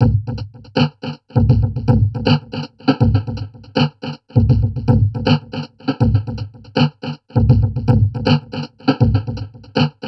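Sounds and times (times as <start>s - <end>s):
heavily processed drum loop: 0.0s - 10.0s.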